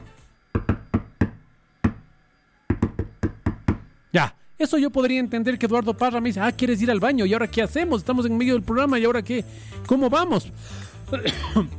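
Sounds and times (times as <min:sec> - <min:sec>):
knocks on a tabletop in Morse code: 0:00.5 - 0:02.1, 0:02.7 - 0:03.9
speech: 0:04.1 - 0:11.7.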